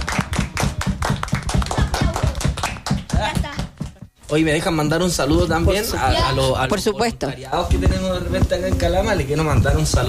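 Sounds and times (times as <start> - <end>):
audience applause: 0.0 - 3.4
speech: 4.3 - 10.0.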